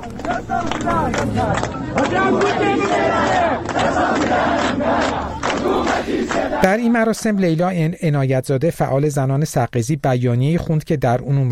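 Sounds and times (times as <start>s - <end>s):
crowd chanting protest slogans at a memorial ceremony: 0.0s - 7.2s
speech: 0.2s - 5.3s, 6.0s - 11.4s.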